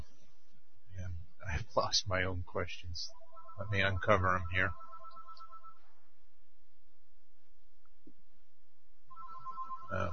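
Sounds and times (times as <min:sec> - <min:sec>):
speech: 0:01.8 - 0:04.8, 0:09.9 - 0:10.1
telephone ringing with an incoming sales call: 0:03.2 - 0:05.8, 0:09.1 - 0:10.1.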